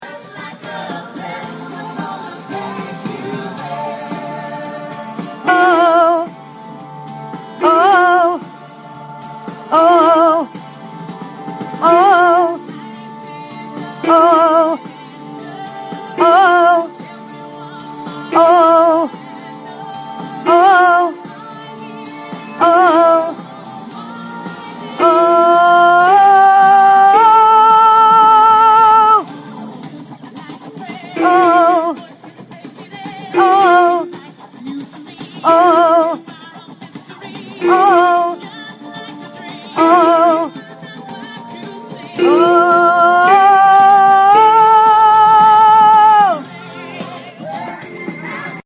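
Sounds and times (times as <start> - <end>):
ooh synth lead: 5.4 - 6.4, 7.6 - 8.4, 9.7 - 10.6, 11.8 - 12.7, 14.0 - 14.8, 16.2 - 17.0, 18.3 - 19.2, 20.4 - 21.3, 22.6 - 23.4, 24.9 - 29.3, 31.2 - 32.0, 33.3 - 34.3, 35.4 - 36.2, 37.6 - 38.5, 39.8 - 40.6, 42.2 - 46.5.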